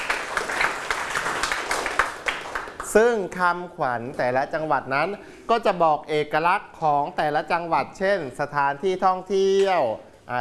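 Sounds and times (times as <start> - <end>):
children clapping in a classroom: 0.0 - 3.1
speech: 2.9 - 10.4.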